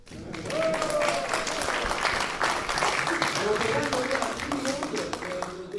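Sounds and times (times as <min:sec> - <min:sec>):
audience applause: 0:00.0 - 0:05.7.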